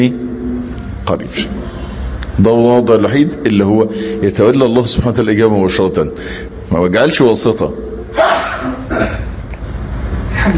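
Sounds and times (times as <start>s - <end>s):
speech: 0.0s - 0.2s, 1.1s - 9.3s, 10.4s - 10.5s
low hum: 0.0s - 10.5s
person sneezing: 8.2s - 9.3s.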